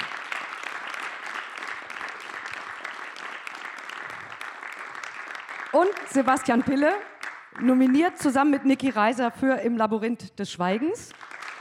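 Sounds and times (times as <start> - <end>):
audience clapping: 0.0 - 8.6, 11.1 - 11.5
speech: 5.7 - 11.2.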